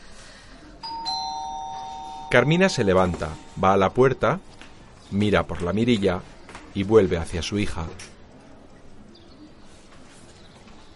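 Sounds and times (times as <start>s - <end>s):
doorbell ringing with two chime tones: 0.8s - 4.4s
speech: 2.3s - 4.5s, 5.1s - 8.1s.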